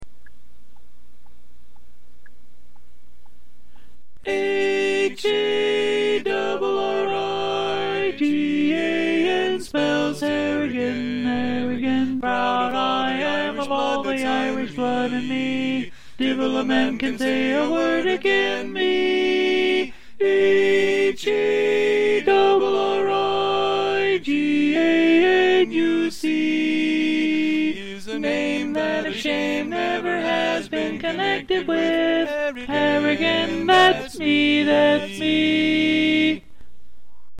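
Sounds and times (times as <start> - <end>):
tenor singing: 4.2 - 36.5.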